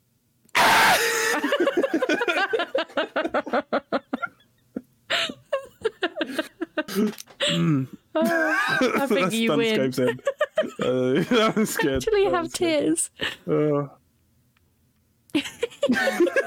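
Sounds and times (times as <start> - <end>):
primal scream: 0.5 - 1.5
breathy pulsing vocal yelps: 0.6 - 1.6
laughter: 0.8 - 4.4, 5.1 - 7.6, 8.2 - 12.3, 15.4 - 16.4
speech: 9.0 - 14.0.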